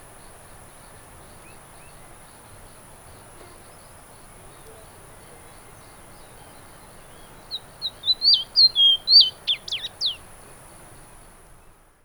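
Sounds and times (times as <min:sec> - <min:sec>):
Sporophila minuta minuta ruddy-breasted seedeater: 0:04.7 - 0:10.3.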